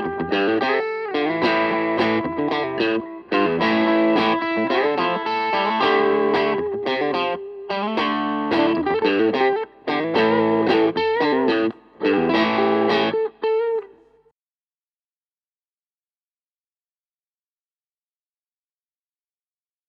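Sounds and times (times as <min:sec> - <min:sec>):
Harley Benton electric guitar with crunch tone: 0:00.0 - 0:14.2.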